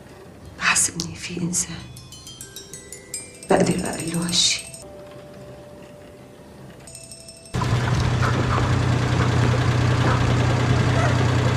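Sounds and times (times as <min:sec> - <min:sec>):
speech: 0:00.8 - 0:02.0, 0:03.8 - 0:04.7
car engine running: 0:07.5 - 0:11.5.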